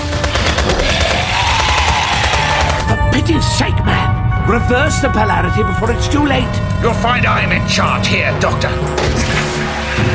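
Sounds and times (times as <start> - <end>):
soldiers firing at will: 0.0 - 2.9
speech: 3.2 - 9.4.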